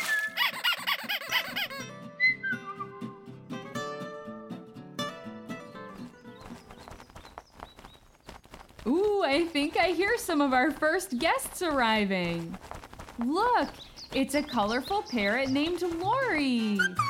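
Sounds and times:
rubber duck toy squeaking: 0.1s - 1.8s, 16.7s - 17.0s
speech: 8.9s - 17.0s.

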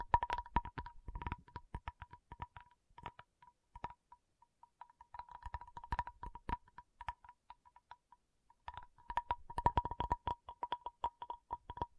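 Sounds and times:
tapping: 0.0s - 11.9s.

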